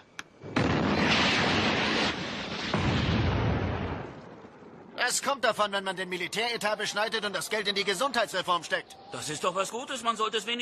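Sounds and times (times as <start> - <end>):
Sidewinder missile launch: 0.4 - 4.4
speech: 5.0 - 10.5.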